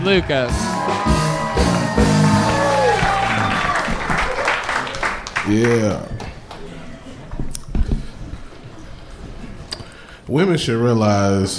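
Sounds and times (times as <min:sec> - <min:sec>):
speech: 0:00.0 - 0:02.5, 0:05.5 - 0:06.2, 0:10.3 - 0:11.5
audience applause: 0:00.0 - 0:07.2
crowd cheering: 0:00.0 - 0:07.2.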